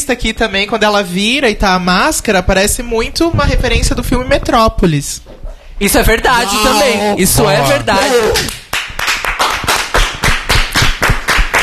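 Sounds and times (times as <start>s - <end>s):
speech: 0.1s - 8.6s
hand clapping applause: 7.8s - 11.6s.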